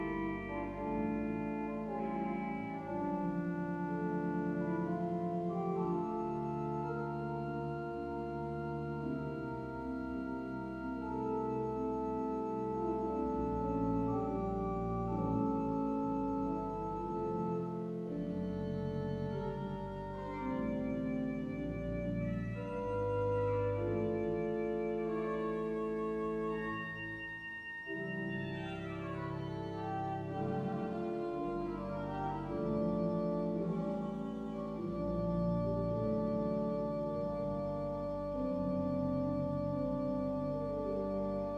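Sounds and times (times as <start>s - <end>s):
pipe organ playing with nazard oboe and kopfregal stops: 0.0s - 41.5s.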